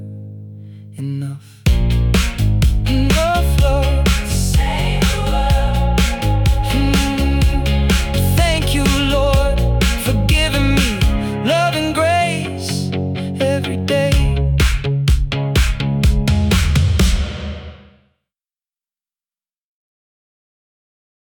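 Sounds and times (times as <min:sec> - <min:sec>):
indie rock remix: 0:01.7 - 0:17.9.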